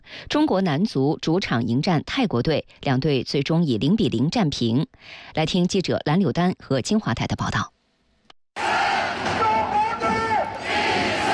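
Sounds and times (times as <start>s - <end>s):
speech: 0.2s - 7.8s
football stadium crowd of 27,000 fans cheering at the Jinhua Sports Centre: 8.6s - 11.3s.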